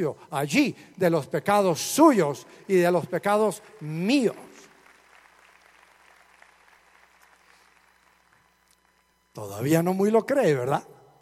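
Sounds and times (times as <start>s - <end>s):
speech: 0.0s - 4.5s, 9.4s - 10.9s
audience applauding: 2.7s - 9.2s.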